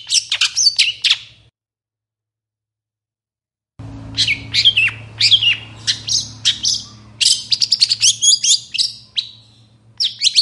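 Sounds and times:
long-tailed shrike chirping song: 0.0 - 1.5, 3.8 - 10.3
low electrical hum: 3.8 - 10.3.

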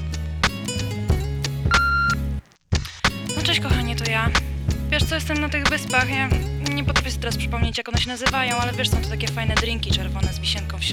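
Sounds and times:
thumping musical beat: 0.4 - 10.6
answering machine beep before a message: 1.7 - 2.2
speech: 3.5 - 10.9.

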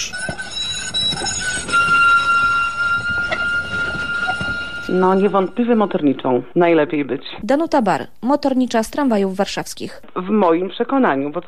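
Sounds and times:
thin sustained metallic squeals from train wheels: 0.0 - 6.1
long-distance Intercity train rolling along the rails: 0.4 - 6.0
speech: 4.9 - 11.4.

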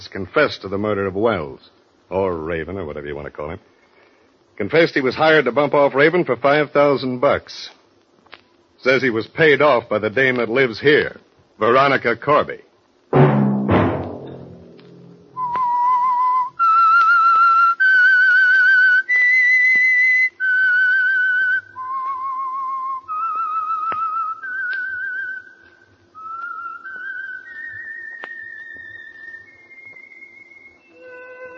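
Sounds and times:
speech: 0.0 - 3.7, 4.6 - 7.8, 8.8 - 12.7
whistled theme melody of radio program: 15.4 - 31.5.

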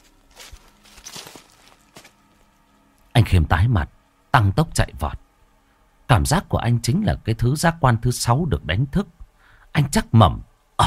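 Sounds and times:
footsteps of someone following behind: 0.0 - 2.5
speech: 3.3 - 5.2, 6.1 - 10.8.

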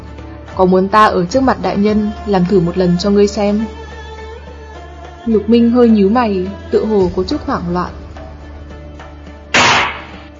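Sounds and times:
speech: 0.6 - 3.8, 5.2 - 8.0
paperweight slammed on a desk like a gavel: 9.6 - 10.3.

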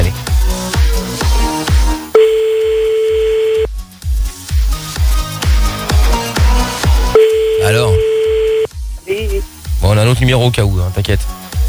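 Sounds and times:
rhythmic music with strong beat: 0.0 - 10.4
telephone tone as a call is placed: 2.2 - 3.7, 7.2 - 8.7
speech: 10.2 - 11.3.

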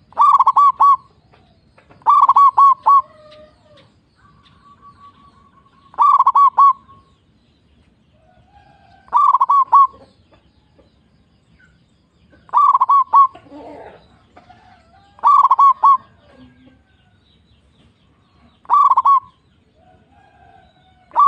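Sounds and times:
zebra dove cooing: 0.0 - 7.0, 8.6 - 10.2, 12.4 - 16.9, 18.5 - 21.2.

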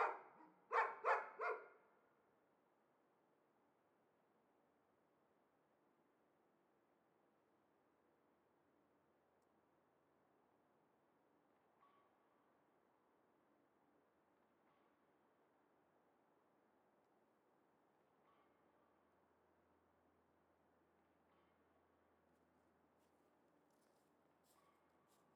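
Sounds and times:
dogs shut in cages barking excitedly: 0.0 - 1.7.

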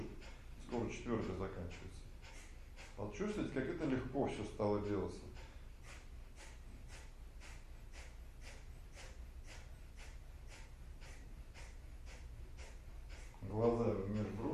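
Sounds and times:
speech: 0.7 - 2.1, 3.0 - 5.5, 13.5 - 14.5
rhythmic forceful nasal breathing exercise: 5.4 - 13.4.

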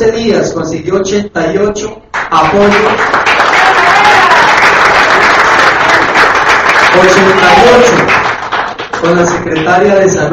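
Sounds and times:
speech: 0.0 - 3.8, 7.0 - 8.3, 9.0 - 10.3
audience clapping at a mayor's public address: 2.1 - 10.3.

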